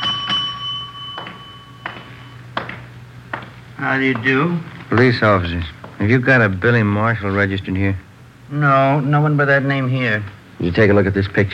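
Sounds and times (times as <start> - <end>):
hotel desk bell ringing: 0.0 - 3.6
speech: 3.8 - 11.5.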